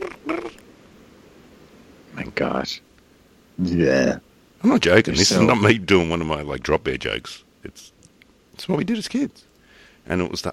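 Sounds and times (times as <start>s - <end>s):
voice imitating cicada buzzing: 0.0s - 0.6s, 3.6s - 4.3s
speech: 2.4s - 2.9s, 3.6s - 8.0s, 8.6s - 9.5s, 10.1s - 10.5s.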